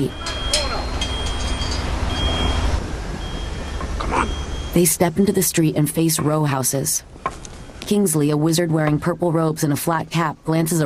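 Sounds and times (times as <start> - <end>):
garbage truck lumbering past on a tree-lined residential street: 0.0 - 7.8
speech: 4.7 - 10.8.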